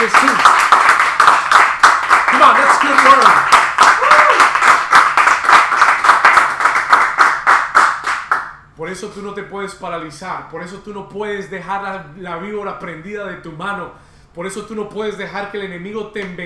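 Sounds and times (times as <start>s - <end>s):
loud applause: 0.0s - 8.5s
speech: 8.9s - 16.4s.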